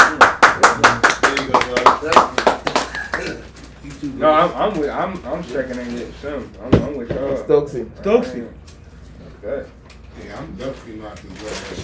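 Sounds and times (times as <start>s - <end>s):
hands clapping: 0.0s - 3.5s
speech: 4.2s - 8.6s, 9.4s - 11.8s.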